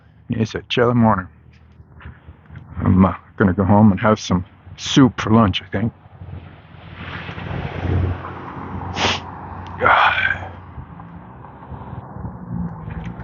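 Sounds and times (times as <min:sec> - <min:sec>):
speech: 0:00.3 - 0:01.4, 0:02.9 - 0:06.0
sniffing and snorting: 0:08.9 - 0:10.6.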